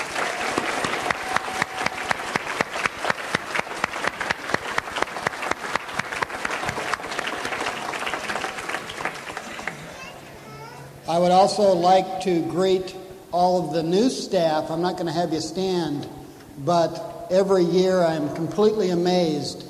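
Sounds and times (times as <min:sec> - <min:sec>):
audience applause: 0:00.0 - 0:10.3
speech: 0:11.2 - 0:19.6.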